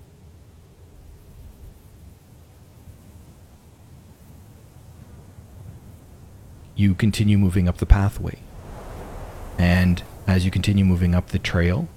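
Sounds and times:
wind blowing through forest trees: 0:02.6 - 0:11.9
speech: 0:06.8 - 0:08.5, 0:09.6 - 0:11.9.

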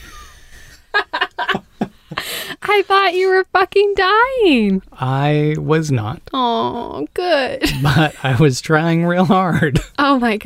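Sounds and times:
laughter: 0:00.9 - 0:02.6, 0:07.6 - 0:08.4
heavy wheezing breathing: 0:02.0 - 0:02.6
speech: 0:02.8 - 0:10.4.

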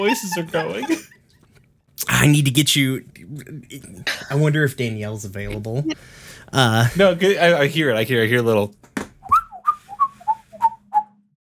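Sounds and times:
speech: 0:00.0 - 0:01.2, 0:02.0 - 0:08.8
laughter: 0:00.0 - 0:01.6, 0:05.4 - 0:07.2
person whistling an imitation of an American kestrel call: 0:09.2 - 0:11.1.

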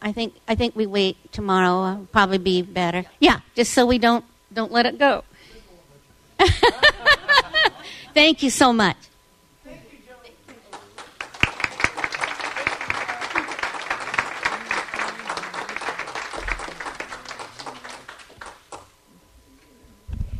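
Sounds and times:
speech: 0:00.0 - 0:05.3, 0:06.4 - 0:07.0, 0:08.2 - 0:09.1
laughter: 0:06.4 - 0:08.2, 0:11.4 - 0:18.4
audience applause: 0:10.5 - 0:18.9.

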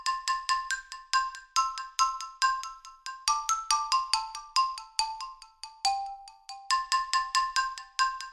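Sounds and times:
woodblock synth patch playing a simple pentatonic melody with delay: 0:00.0 - 0:08.3.

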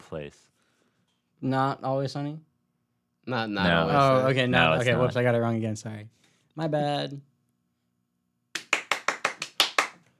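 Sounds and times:
speech: 0:00.1 - 0:00.6, 0:01.4 - 0:02.5, 0:03.2 - 0:07.3
hands clapping: 0:08.5 - 0:10.1.

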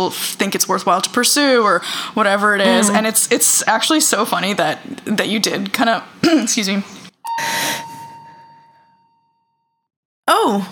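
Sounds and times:
speech: 0:00.0 - 0:07.6
fire alarm: 0:07.2 - 0:09.9.

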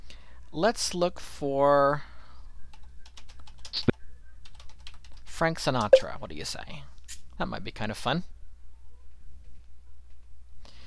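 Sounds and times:
speech: 0:00.5 - 0:02.1, 0:05.4 - 0:08.4
computer keyboard typing: 0:02.7 - 0:03.8, 0:04.4 - 0:05.2.

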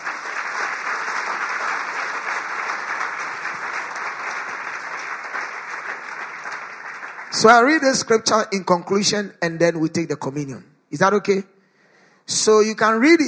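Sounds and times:
audience clapping: 0:00.0 - 0:08.3
speech: 0:07.4 - 0:11.5, 0:12.3 - 0:13.2.

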